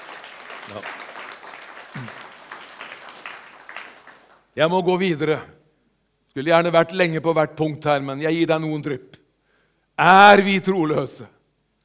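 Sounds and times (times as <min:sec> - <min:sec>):
audience applause: 0:00.0 - 0:04.5
speech: 0:00.7 - 0:01.0, 0:04.6 - 0:05.6, 0:06.4 - 0:09.2, 0:10.0 - 0:11.4.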